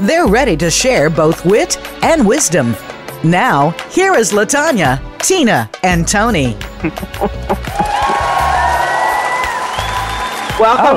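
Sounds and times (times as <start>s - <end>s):
speech: 0.0s - 8.1s, 10.6s - 10.9s
crowd applause: 6.9s - 10.9s.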